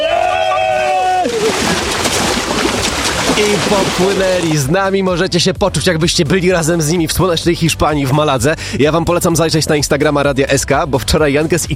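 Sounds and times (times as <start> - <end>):
people splashing as they run into sea: 1.0 - 4.7
speech: 3.4 - 11.7.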